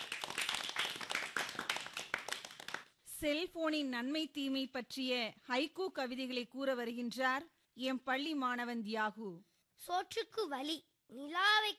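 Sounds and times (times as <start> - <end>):
audience applauding students at a school programme: 0.0 - 3.0
speech: 3.2 - 11.7.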